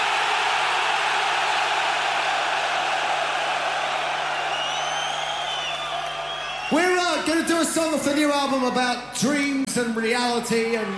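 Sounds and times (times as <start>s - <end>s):
massive stadium crowd of metal fans screaming: 0.0s - 7.2s
shrill whistles: 4.2s - 6.8s
speech: 6.7s - 10.9s.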